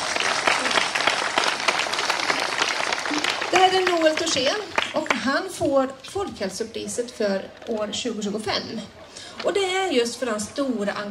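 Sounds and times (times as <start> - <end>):
audience applause: 0.0 - 5.2
speech: 3.5 - 11.1.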